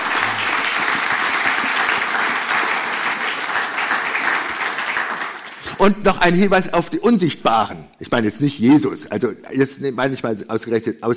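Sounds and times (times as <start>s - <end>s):
crowd applause: 0.0s - 5.8s
speech: 5.8s - 11.1s.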